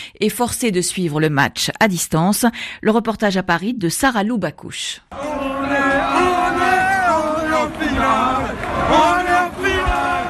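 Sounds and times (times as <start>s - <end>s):
speech: 0.1s - 6.3s
football supporters cheering and shouting in bar: 5.1s - 10.2s.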